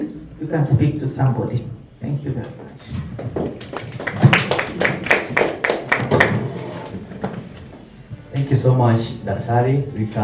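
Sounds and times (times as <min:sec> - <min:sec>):
speech: 0:00.4 - 0:03.8, 0:08.6 - 0:10.2
audience clapping: 0:03.5 - 0:06.9.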